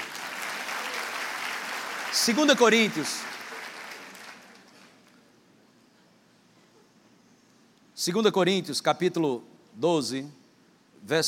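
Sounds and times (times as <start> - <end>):
crowd clapping: 0.0 - 5.2
speech: 2.1 - 3.4, 8.0 - 10.4, 11.0 - 11.2.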